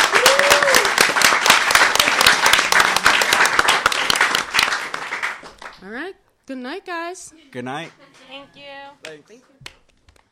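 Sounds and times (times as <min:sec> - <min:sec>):
audience applause: 0:00.0 - 0:05.8
speech: 0:06.5 - 0:09.7.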